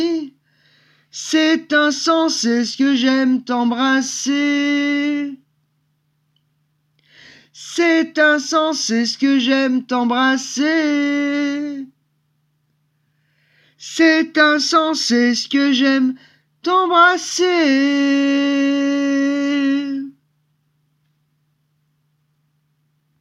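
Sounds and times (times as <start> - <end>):
a cappella singing: 0.0 - 0.4, 1.1 - 5.5, 7.6 - 12.0, 13.8 - 20.2.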